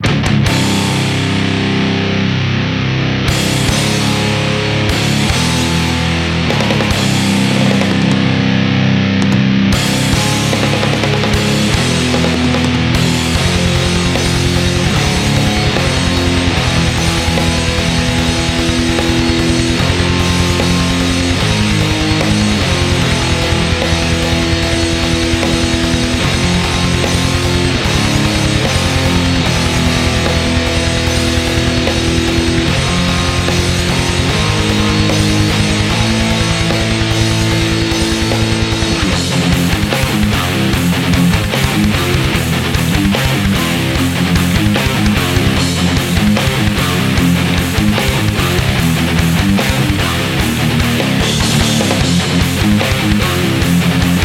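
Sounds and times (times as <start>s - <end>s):
metal music: 0.0s - 54.2s.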